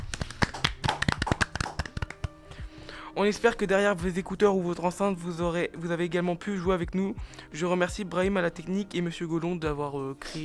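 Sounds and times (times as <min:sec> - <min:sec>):
applause: 0:00.0 - 0:02.4
speech: 0:03.2 - 0:10.4.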